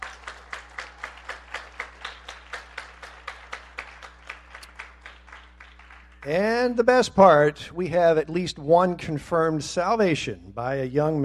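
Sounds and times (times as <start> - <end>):
people applauding: 0.0 - 6.7
speech: 6.2 - 11.2.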